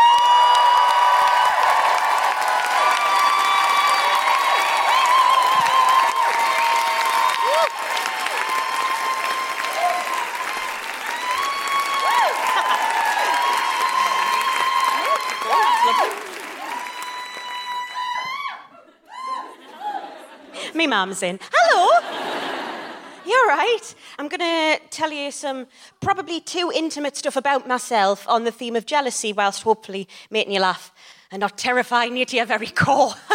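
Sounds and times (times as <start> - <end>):
audience applause: 0.0 - 18.5
speech: 20.8 - 22.0, 23.3 - 33.3.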